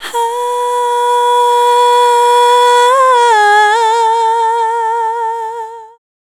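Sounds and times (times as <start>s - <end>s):
female dance vocals: 0.0s - 6.0s.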